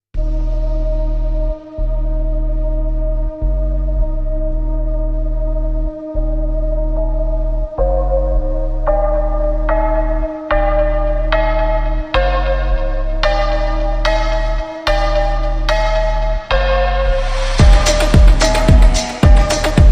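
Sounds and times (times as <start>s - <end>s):
slowed reverb music: 0.2s - 19.9s.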